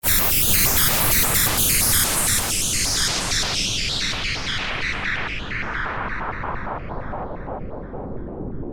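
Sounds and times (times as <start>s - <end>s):
delayed pink noise: 0.0s - 8.6s.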